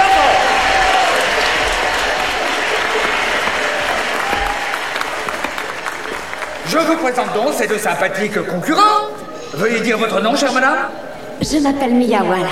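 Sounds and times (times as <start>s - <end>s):
audience applause: 0.0s - 7.9s
speech: 6.8s - 12.5s.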